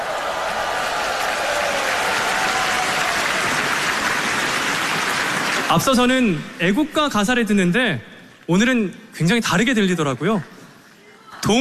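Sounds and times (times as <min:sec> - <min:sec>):
audience applause: 0:00.0 - 0:06.2
speech: 0:05.7 - 0:10.5.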